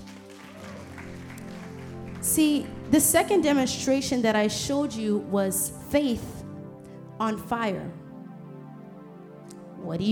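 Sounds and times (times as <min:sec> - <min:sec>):
audience clapping: 0:00.0 - 0:03.0
speech: 0:02.4 - 0:06.4, 0:07.2 - 0:08.0, 0:09.9 - 0:10.1.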